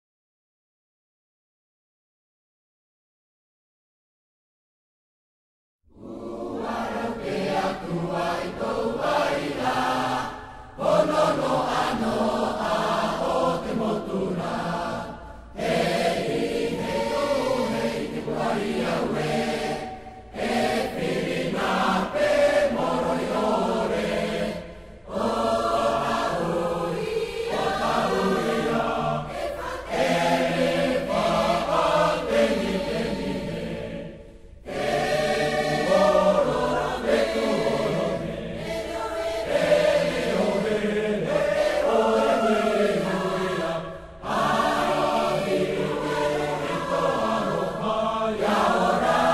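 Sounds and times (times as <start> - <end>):
national anthem: 6.0 - 49.3.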